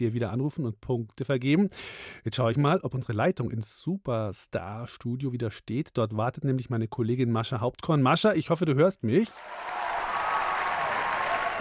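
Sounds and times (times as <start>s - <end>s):
speech: 0.0s - 9.8s
studio audience applause: 9.4s - 11.5s.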